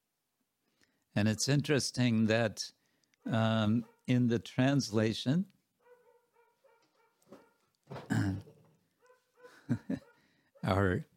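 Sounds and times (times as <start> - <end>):
speech: 1.2 - 5.6, 10.6 - 11.1
friendly dog barking: 3.8 - 4.1, 5.8 - 7.7, 9.0 - 10.8.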